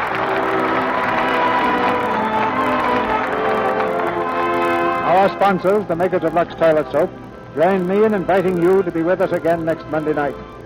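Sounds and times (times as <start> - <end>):
sustained audience applause: 0.0 - 7.1
faint tonal hum: 0.0 - 10.6
speech: 5.3 - 10.6.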